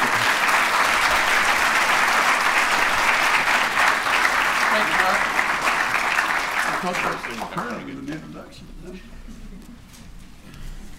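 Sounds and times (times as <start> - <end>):
audience applause welcoming the chancellor: 0.0 - 8.1
speech: 6.8 - 9.4.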